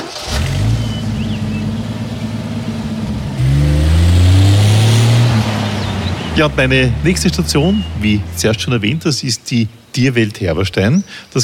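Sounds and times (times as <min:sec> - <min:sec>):
car engine revving: 0:00.0 - 0:09.1
car driving off: 0:00.0 - 0:09.9
speech: 0:06.4 - 0:11.4.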